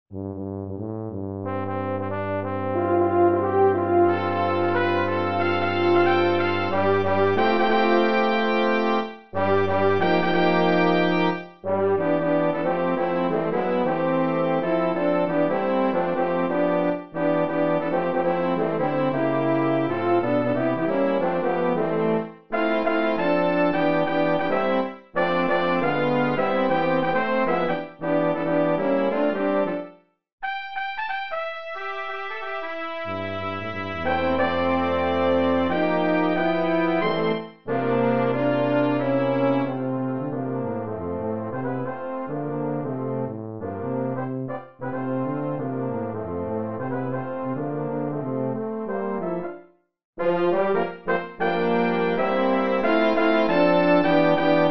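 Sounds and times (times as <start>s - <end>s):
quintet playing: 0.2s - 49.6s, 50.2s - 54.6s.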